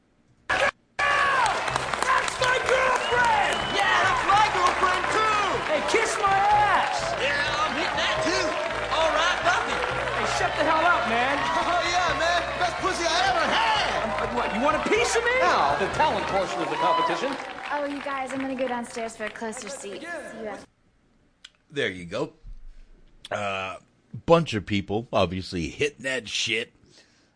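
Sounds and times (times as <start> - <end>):
group of men yelling in movie scene: 0.5 - 17.3
speech: 14.6 - 20.7, 21.7 - 22.4, 23.2 - 26.8.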